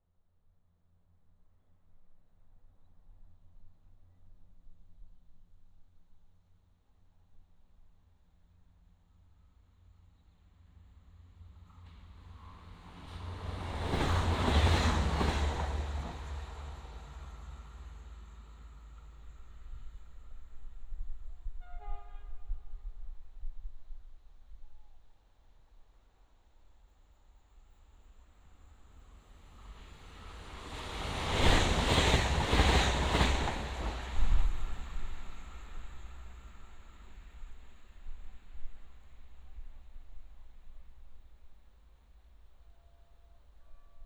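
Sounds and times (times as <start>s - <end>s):
trains: 9.7s - 44.0s.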